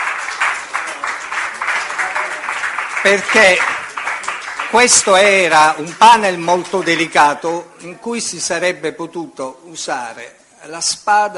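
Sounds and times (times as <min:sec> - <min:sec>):
audience applause at a conference panel for a panelist: 0:00.0 - 0:07.6
speech: 0:03.0 - 0:03.8, 0:04.7 - 0:11.3.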